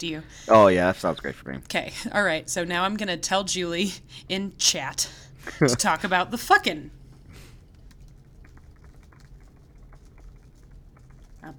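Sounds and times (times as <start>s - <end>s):
speech: 0.0s - 7.0s
typing on a keyboard: 7.2s - 11.5s.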